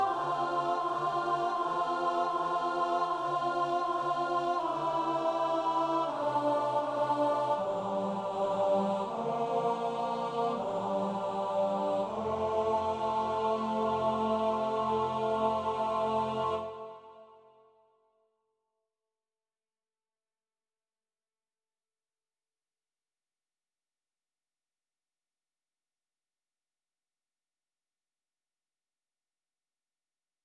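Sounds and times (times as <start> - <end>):
alto voice singing a prayer: 0.0 - 17.6.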